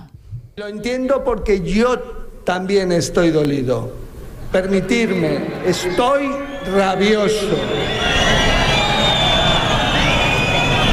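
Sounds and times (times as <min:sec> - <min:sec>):
speech: 0:00.6 - 0:08.3
crowd booing a minister: 0:04.6 - 0:10.9.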